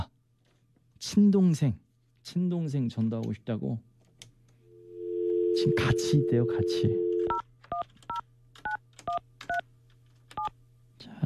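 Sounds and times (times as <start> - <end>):
speech: 1.0 - 3.9, 5.6 - 7.9
telephone dialing tones: 5.0 - 7.8.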